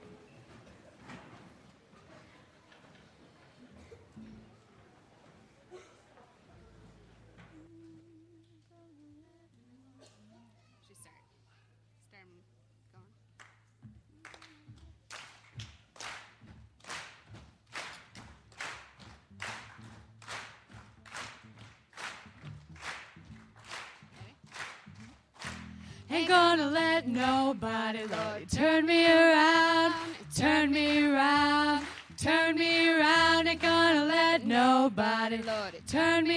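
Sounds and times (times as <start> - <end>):
audience clapping along to song: 13.4 - 36.3
speech: 26.2 - 36.3.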